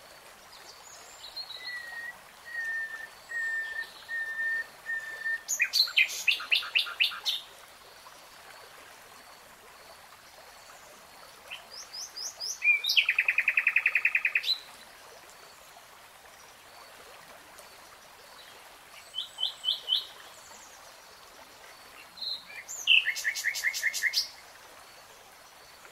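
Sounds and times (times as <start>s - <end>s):
nightingale song: 0.5s - 7.4s, 11.5s - 14.7s, 18.4s - 20.8s, 22.0s - 24.4s.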